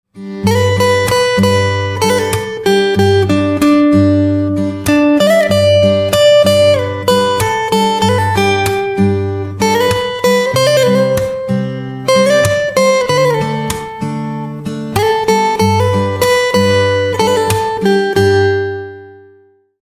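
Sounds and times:
guitar: 0.1s - 19.8s.

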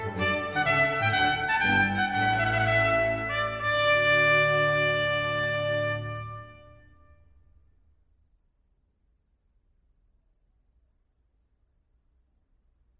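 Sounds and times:
trumpet tune: 0.0s - 7.4s.

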